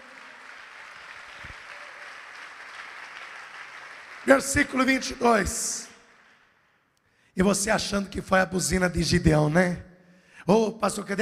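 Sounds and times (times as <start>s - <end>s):
audience applauding: 0.0s - 6.5s
speech: 4.2s - 5.9s, 7.4s - 11.2s.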